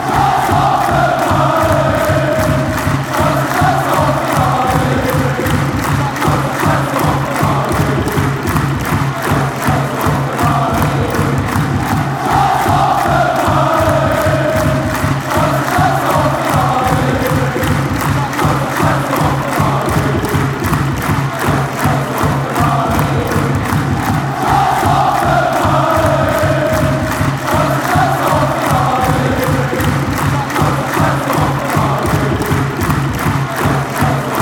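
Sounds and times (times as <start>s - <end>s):
chanting: 0.0s - 34.4s.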